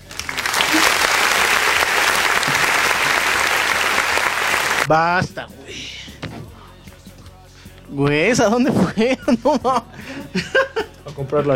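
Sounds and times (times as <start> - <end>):
crowd applause: 0.0 - 4.9
laughter: 0.1 - 4.9, 8.4 - 11.2
speech: 4.9 - 5.9, 7.9 - 11.5.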